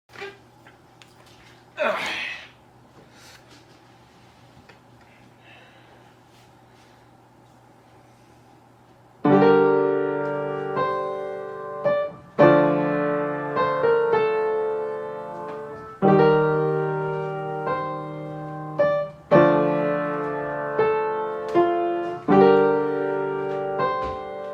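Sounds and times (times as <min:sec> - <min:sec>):
piano cover: 0:09.2 - 0:24.5.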